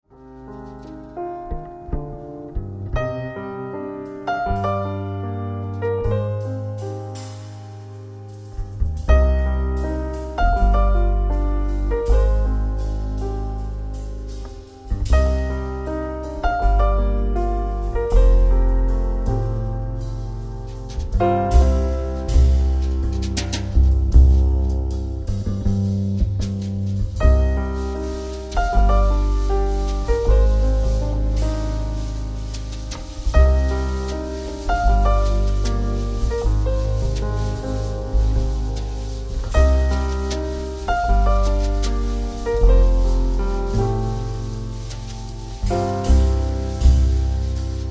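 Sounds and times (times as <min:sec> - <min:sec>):
jazz kolo folk dance music: 0:00.0 - 0:47.8.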